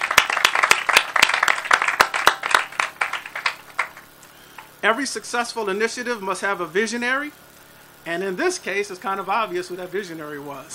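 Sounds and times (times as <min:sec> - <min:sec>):
audience applause: 0:00.0 - 0:04.0
speech: 0:04.8 - 0:07.4, 0:08.0 - 0:10.7.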